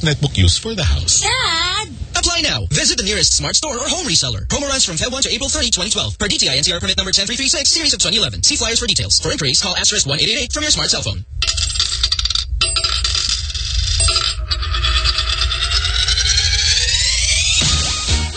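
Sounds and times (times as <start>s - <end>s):
speech: 0.0s - 12.0s
coins dropping and clinking: 11.4s - 14.4s
bright metallic ringing rising in pitch: 11.4s - 18.2s.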